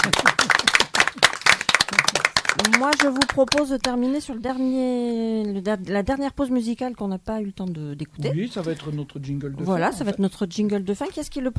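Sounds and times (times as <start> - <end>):
audience applause: 0.0 - 3.7
speech: 2.6 - 11.5.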